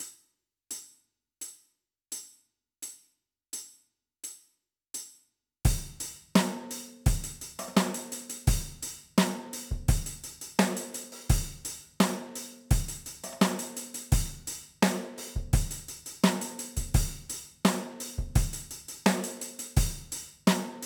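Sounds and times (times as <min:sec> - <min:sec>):
drums: 0:05.7 - 0:20.8.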